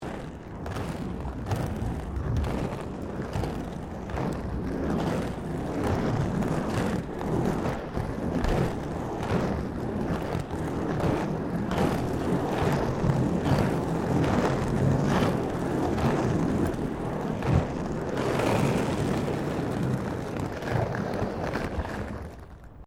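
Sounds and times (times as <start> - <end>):
rollerblading on rough paving: 0.0 - 22.8.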